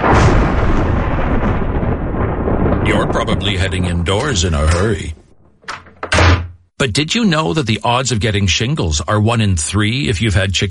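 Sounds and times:
thunder rumbling: 0:00.0 - 0:06.4
speech: 0:03.1 - 0:05.2, 0:06.8 - 0:10.6.

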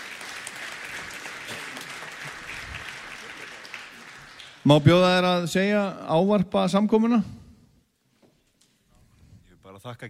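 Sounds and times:
applause for a drummer from big band and bossa nova colleagues: 0:00.0 - 0:05.5
speech: 0:04.7 - 0:07.4, 0:09.8 - 0:10.0.

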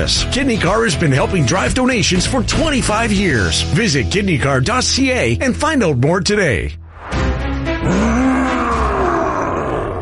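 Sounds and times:
speech: 0:00.0 - 0:06.8
monster roar: 0:07.8 - 0:09.9.

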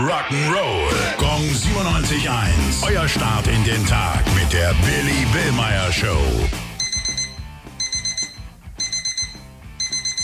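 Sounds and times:
speech: 0:00.0 - 0:00.9, 0:02.2 - 0:06.7
alarm clock electronic beeping: 0:06.8 - 0:10.2.

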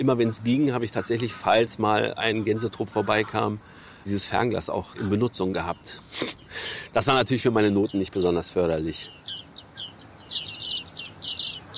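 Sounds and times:
speech: 0:00.0 - 0:09.4
bearded reedlings calling: 0:00.0 - 0:11.7.

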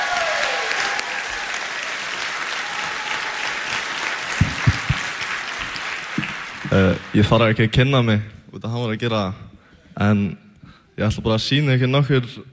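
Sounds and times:
audience applause welcoming a performer to the stage: 0:00.0 - 0:07.7
low thumps: 0:04.4 - 0:05.0
speech: 0:06.7 - 0:09.4, 0:10.0 - 0:10.4, 0:11.0 - 0:12.5.

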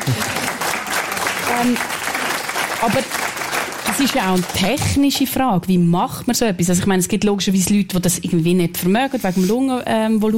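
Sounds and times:
audience applause: 0:00.0 - 0:05.0
speech: 0:00.1 - 0:00.4, 0:01.5 - 0:02.0, 0:02.8 - 0:03.3, 0:04.0 - 0:10.3.

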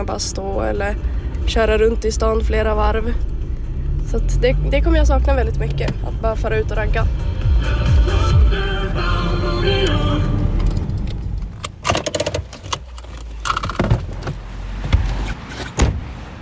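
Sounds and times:
speech: 0:00.0 - 0:03.3, 0:04.1 - 0:10.3
EPA tractor car engine droning: 0:00.0 - 0:11.6
sharp clunks and rattles: 0:10.6 - 0:16.1.

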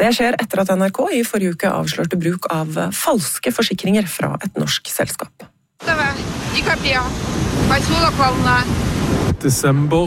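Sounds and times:
speech: 0:00.0 - 0:10.0
waves on a Black Sea beach at Volna in Russia: 0:05.8 - 0:09.4.

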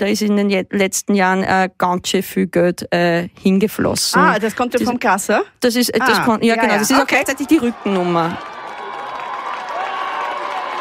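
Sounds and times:
speech: 0:00.0 - 0:08.6
crowd cheering at Vienna City Marathon finish line: 0:06.1 - 0:10.7
crowd clapping: 0:07.4 - 0:10.7.

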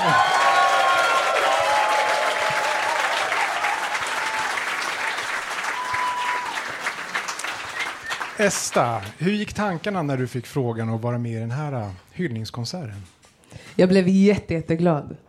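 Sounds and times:
whistles and cheers: 0:00.0 - 0:09.2
crowd applauding: 0:00.0 - 0:09.7
speech: 0:08.4 - 0:13.2, 0:13.8 - 0:15.2.

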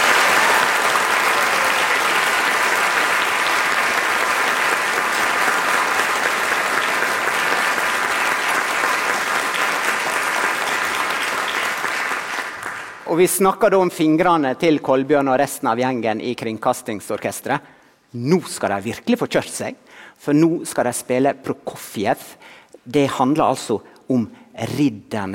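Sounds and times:
audience applause: 0:00.0 - 0:13.0
speech: 0:13.2 - 0:25.3.

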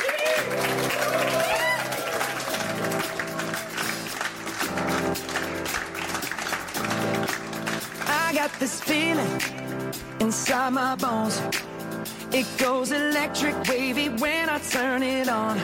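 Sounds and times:
audience applause: 0:00.0 - 0:08.9
speech: 0:08.4 - 0:15.6.

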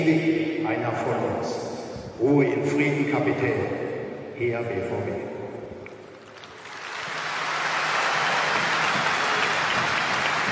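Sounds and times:
speech: 0:00.0 - 0:05.3
audience applause after a minute's silence: 0:06.1 - 0:10.5.

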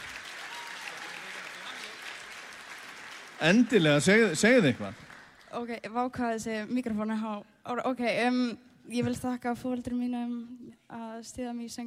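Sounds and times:
audience applause after a singing performance at an awards event: 0:00.0 - 0:05.5
speech: 0:03.4 - 0:11.8.

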